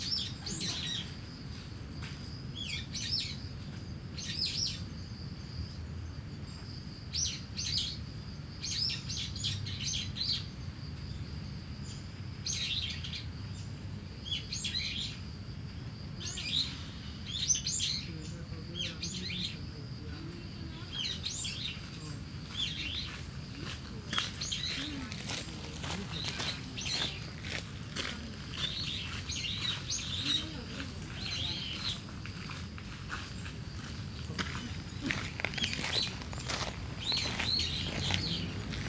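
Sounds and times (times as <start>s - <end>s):
cricket trilling: 0.0s - 3.6s, 4.2s - 38.8s
traffic rumble: 18.3s - 38.8s
starling chattering: 20.2s - 38.8s.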